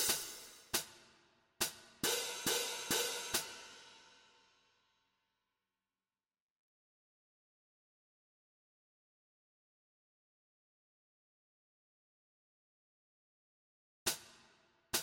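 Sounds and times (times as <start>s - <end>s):
cymbals in a jig rhythm: 0.0s - 1.0s, 1.6s - 4.3s.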